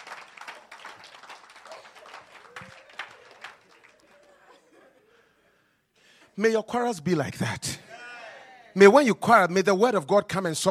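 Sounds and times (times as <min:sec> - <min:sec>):
audience clapping: 0:00.0 - 0:04.7
laughter: 0:01.6 - 0:05.6
speech: 0:06.4 - 0:07.8, 0:08.8 - 0:10.6.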